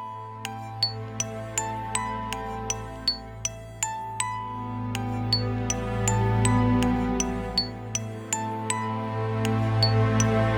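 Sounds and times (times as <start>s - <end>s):
lamenting melody: 0.1s - 10.5s.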